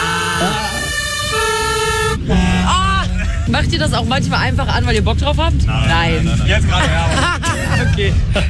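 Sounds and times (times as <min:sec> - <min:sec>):
fire engine siren or horn: 0:00.0 - 0:03.4
laughter: 0:02.2 - 0:03.9, 0:06.2 - 0:08.4
speech: 0:03.5 - 0:08.4.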